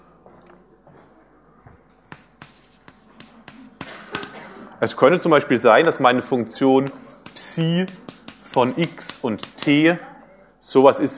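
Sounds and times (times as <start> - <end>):
pen writing during a lecture: 2.1 - 4.3, 6.8 - 9.8
speech: 4.8 - 11.1.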